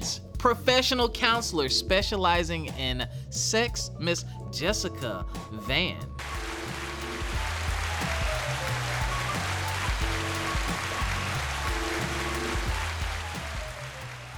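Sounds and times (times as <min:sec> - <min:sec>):
faint low musical tones: 0:00.0 - 0:14.3
speech: 0:00.1 - 0:06.3
audience applause: 0:06.2 - 0:14.3.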